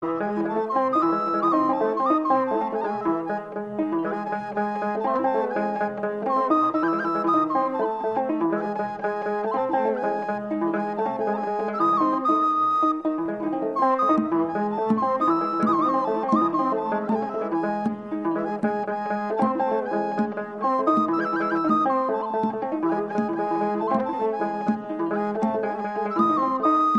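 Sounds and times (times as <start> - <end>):
Ethiopian mezmur instrumental music: 0.0 - 26.9.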